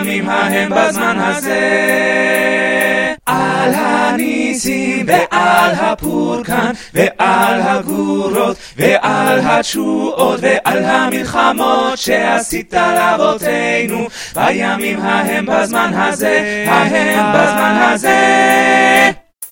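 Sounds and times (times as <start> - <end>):
choir singing: 0.0 - 19.3.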